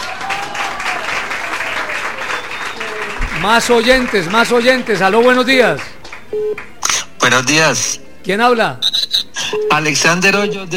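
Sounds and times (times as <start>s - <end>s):
audience applause: 0.0s - 6.7s
speech: 3.4s - 8.8s, 9.7s - 10.7s.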